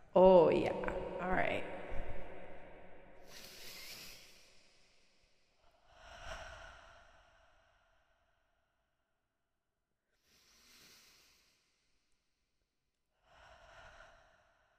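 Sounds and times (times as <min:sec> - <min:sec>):
speech: 0:00.2 - 0:01.7
deep breaths with echo effect on the microphone: 0:00.8 - 0:08.6, 0:10.2 - 0:12.0, 0:13.2 - 0:14.7.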